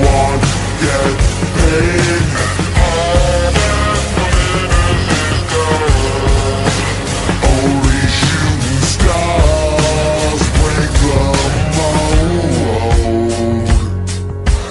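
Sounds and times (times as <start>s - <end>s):
chase music: 0.0s - 14.6s.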